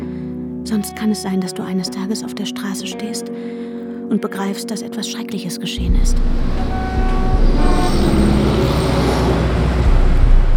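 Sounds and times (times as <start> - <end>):
speech: 0.7 - 6.8
loud street traffic with low engine rumble: 5.9 - 10.5
car horns honking: 6.2 - 10.3
cars squealing: 6.5 - 10.2.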